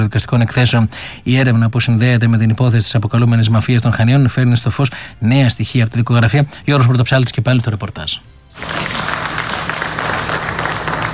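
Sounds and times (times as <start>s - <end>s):
speech: 0.0s - 9.1s
relatives and friends applauding: 8.6s - 11.1s.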